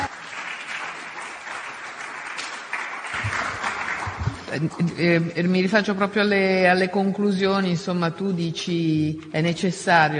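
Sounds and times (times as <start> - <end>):
audience applause: 0.0 - 4.9
speech: 4.5 - 10.1.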